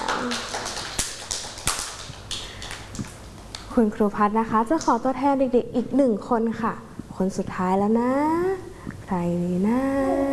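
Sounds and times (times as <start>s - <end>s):
children clapping: 0.0s - 3.2s
speech: 3.8s - 10.3s.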